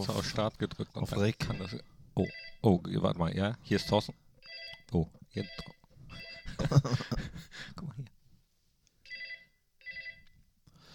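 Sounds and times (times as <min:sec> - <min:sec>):
speech: 0:00.0 - 0:04.2, 0:04.9 - 0:08.1
telephone ringing: 0:01.4 - 0:02.6, 0:03.8 - 0:04.8, 0:05.4 - 0:06.7, 0:09.1 - 0:10.3
laughter: 0:06.5 - 0:07.6.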